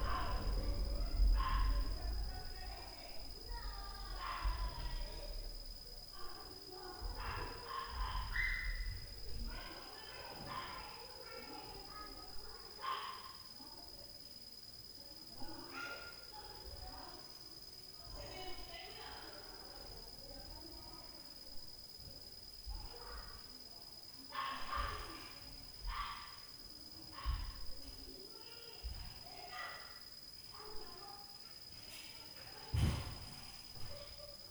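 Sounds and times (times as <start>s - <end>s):
children at night: 0.0s - 34.4s
dog at night: 1.3s - 2.0s, 4.1s - 4.8s, 7.0s - 9.8s, 10.4s - 11.0s, 12.8s - 13.4s, 15.4s - 16.3s, 24.3s - 26.4s, 29.4s - 30.0s
door slamming at night: 32.7s - 33.5s.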